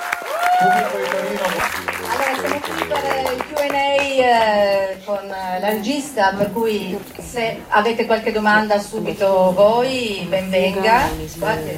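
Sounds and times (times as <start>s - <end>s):
audience applause for a film director at a screening: 0.0s - 5.2s
speech: 0.6s - 11.7s.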